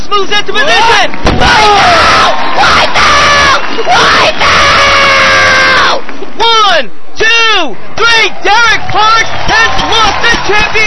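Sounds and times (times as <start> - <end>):
speech: 0.1 - 1.9, 7.6 - 10.8
blood-curdling scream: 1.4 - 6.0.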